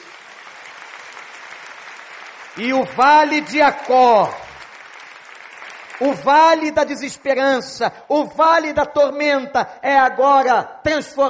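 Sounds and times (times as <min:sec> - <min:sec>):
audience applauding: 0:00.0 - 0:07.2
speech: 0:02.6 - 0:04.4, 0:06.0 - 0:11.2.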